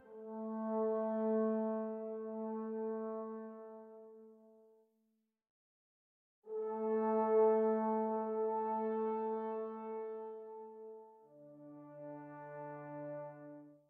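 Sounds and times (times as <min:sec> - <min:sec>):
brass instruments: 0:00.0 - 0:04.8, 0:06.5 - 0:13.8.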